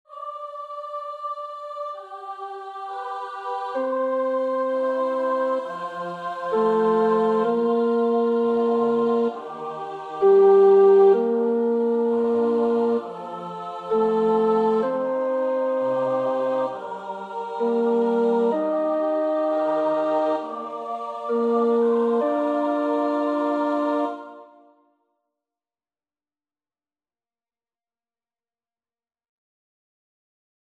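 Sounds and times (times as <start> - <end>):
tenor practising a choir part: 0.1 - 24.7.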